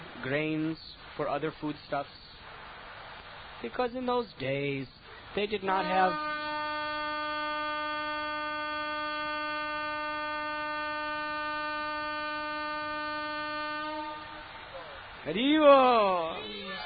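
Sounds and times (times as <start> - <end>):
speech: 0.2 - 2.3, 3.6 - 6.3, 15.2 - 16.5
train horn sounding: 5.8 - 14.8, 16.3 - 16.8.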